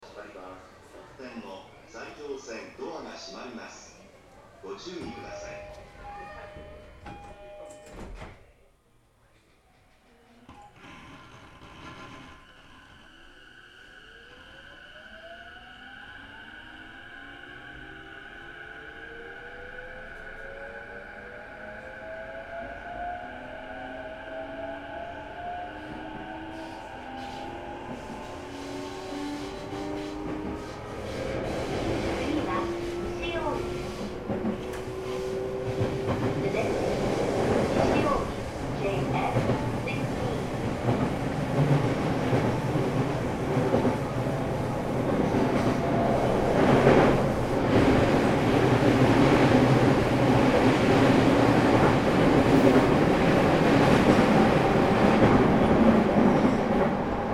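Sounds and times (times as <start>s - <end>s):
Sotetsu 12000 train: 0.0s - 57.3s.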